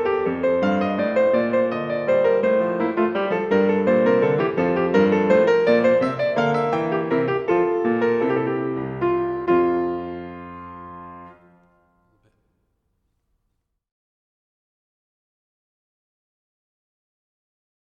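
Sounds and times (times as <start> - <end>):
prelude and fugue: 0.0 - 12.4.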